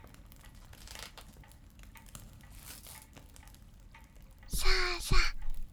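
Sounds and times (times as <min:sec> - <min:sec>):
ear cleaning: 0:04.5 - 0:05.7.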